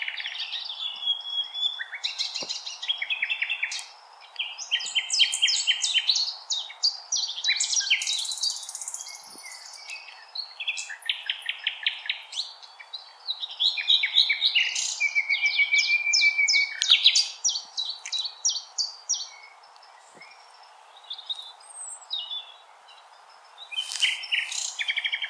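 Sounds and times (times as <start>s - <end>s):
common nightingale song: 0.0s - 25.2s.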